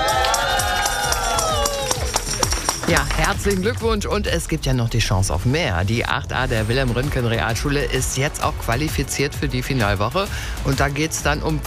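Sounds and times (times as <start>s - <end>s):
school class cheering and whooping at a prize handover: 0.0s - 3.1s
speech: 2.9s - 11.6s.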